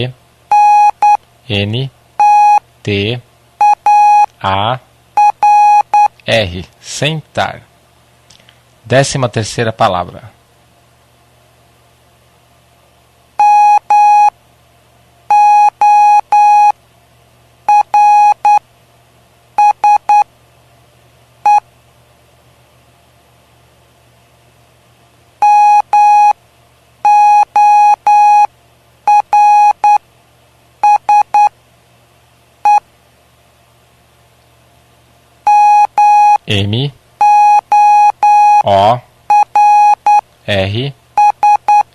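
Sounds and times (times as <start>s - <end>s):
speech: 0.0s - 0.2s, 1.5s - 2.0s, 2.8s - 3.3s, 4.4s - 4.9s, 6.3s - 7.7s, 8.9s - 10.4s
faint low hum: 0.0s - 41.9s
Morse code beeps: 0.5s - 1.2s, 2.2s - 2.6s, 3.6s - 4.3s, 5.2s - 6.1s, 13.4s - 14.3s, 15.3s - 16.7s, 17.7s - 18.6s, 19.6s - 20.2s, 25.4s - 26.4s, 27.0s - 28.5s, 29.1s - 30.0s, 30.8s - 31.5s, 35.5s - 36.4s, 37.2s - 40.2s, 41.2s - 41.9s.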